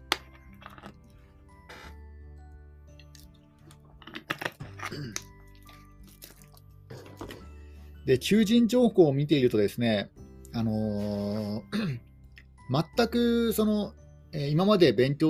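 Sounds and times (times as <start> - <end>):
person drinking a beverage: 0.6 - 2.0, 3.0 - 7.6
speech: 8.1 - 12.1, 12.7 - 15.2.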